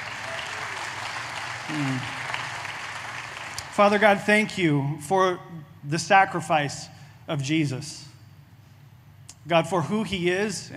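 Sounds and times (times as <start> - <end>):
audience clapping: 0.0 - 4.2
speech: 1.7 - 2.2, 3.8 - 8.1, 9.5 - 10.7.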